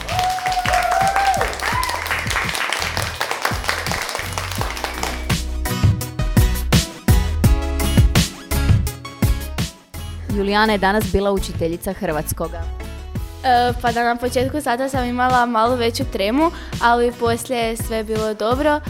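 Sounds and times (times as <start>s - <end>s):
classroom applause for pupils who served as teachers for the day: 0.0s - 5.4s
music with a steady thumping beat: 1.0s - 10.0s, 13.2s - 18.8s
speech: 10.4s - 12.8s, 13.4s - 18.8s.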